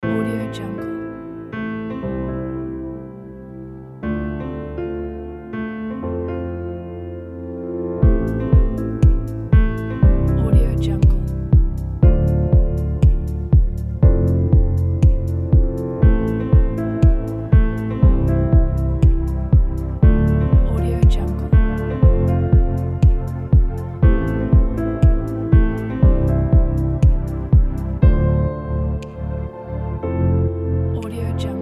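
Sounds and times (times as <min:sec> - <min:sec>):
ambient corporate music: 0:00.0 - 0:31.5.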